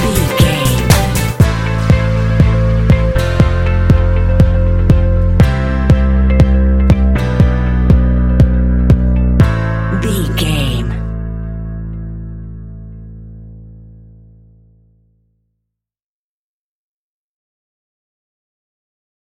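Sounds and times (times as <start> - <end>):
inspirational corporate pop music: 0.0 - 10.7.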